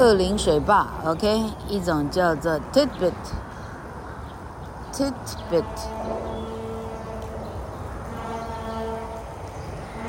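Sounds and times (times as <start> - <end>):
speech: 0.0 - 3.4, 5.0 - 6.3
small horn toot: 5.4 - 10.0.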